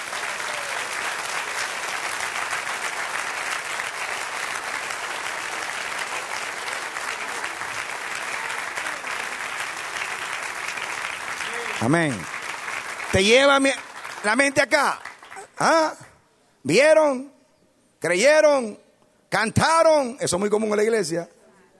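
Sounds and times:
audience applause: 0:00.0 - 0:15.6
speech: 0:11.8 - 0:12.3, 0:13.1 - 0:15.0, 0:15.6 - 0:16.0, 0:16.6 - 0:17.3, 0:18.0 - 0:21.4.

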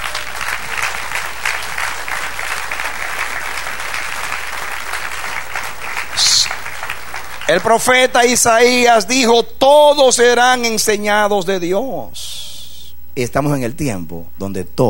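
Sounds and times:
audience clapping: 0:00.0 - 0:09.0
speech: 0:07.5 - 0:12.2, 0:13.2 - 0:14.8.

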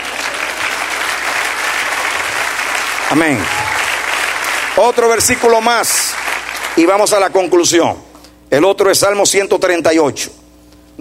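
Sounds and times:
congregation applauding at a Spanish-language church service: 0:00.0 - 0:07.7
speech: 0:03.1 - 0:03.7, 0:04.8 - 0:10.4.

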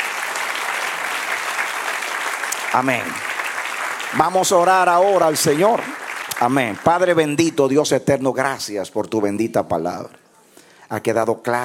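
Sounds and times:
church congregation applause: 0:00.0 - 0:07.8
speech: 0:02.7 - 0:03.3, 0:04.1 - 0:10.2, 0:10.9 - 0:11.6.

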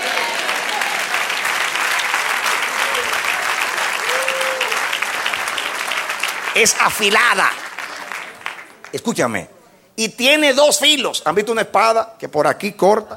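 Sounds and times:
audience applause: 0:00.0 - 0:09.2
speech: 0:06.6 - 0:07.6, 0:08.9 - 0:13.1.

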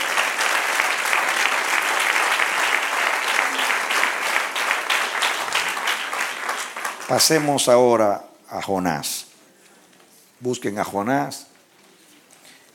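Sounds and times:
audience applause: 0:00.0 - 0:07.8
speech: 0:07.1 - 0:09.2, 0:10.4 - 0:11.4.

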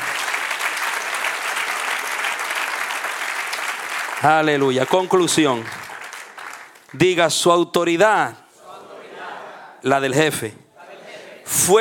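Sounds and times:
audience applauding: 0:00.0 - 0:07.2
speech: 0:04.2 - 0:05.8, 0:06.9 - 0:08.4, 0:09.8 - 0:10.6, 0:11.5 - 0:11.7.

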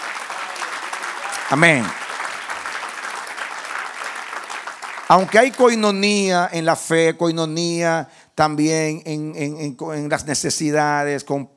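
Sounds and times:
church congregation clapping during a Spanish-language worship service: 0:00.0 - 0:06.6
speech: 0:01.5 - 0:02.0, 0:05.1 - 0:11.5.

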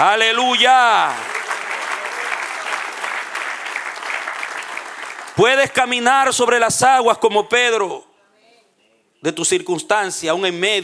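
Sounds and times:
speech: 0:00.0 - 0:01.4, 0:05.4 - 0:08.1, 0:09.2 - 0:10.8
applause: 0:00.0 - 0:06.4.

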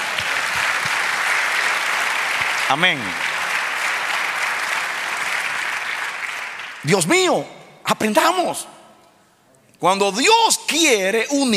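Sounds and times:
audience clapping: 0:00.0 - 0:07.4
speech: 0:02.7 - 0:03.3, 0:06.8 - 0:08.7, 0:09.8 - 0:11.5.

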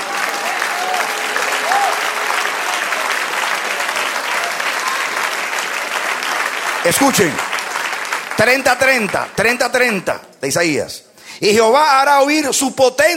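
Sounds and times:
audience applause: 0:00.0 - 0:09.9
person whooping: 0:00.1 - 0:02.1
speech: 0:06.9 - 0:07.5, 0:08.4 - 0:13.1.

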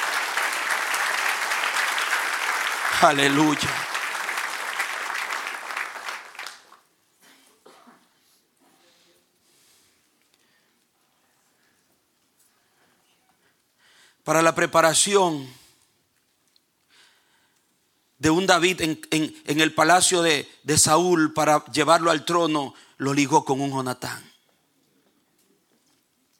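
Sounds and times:
audience applause: 0:00.0 - 0:06.8
speech: 0:03.0 - 0:03.9, 0:14.3 - 0:15.6, 0:18.2 - 0:24.3.

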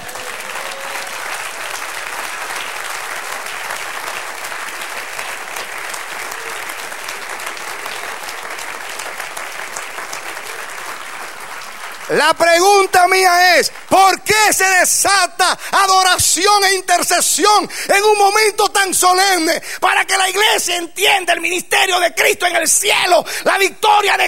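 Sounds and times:
audience applause: 0:00.0 - 0:16.1
speech: 0:12.2 - 0:24.2.

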